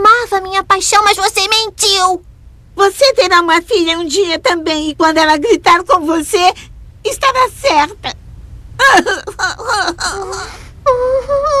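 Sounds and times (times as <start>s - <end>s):
speech: 0.8s - 8.2s, 8.8s - 11.5s
mother crying and wailing: 8.8s - 11.5s.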